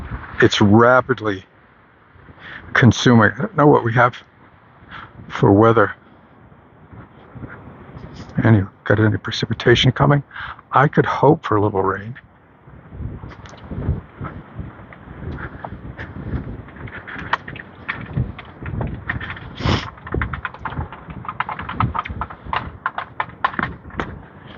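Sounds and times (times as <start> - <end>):
speech: 0.4 - 1.5, 2.5 - 4.3, 4.9 - 6.0, 8.4 - 12.3
recycling cans rolling down the street: 14.2 - 24.5.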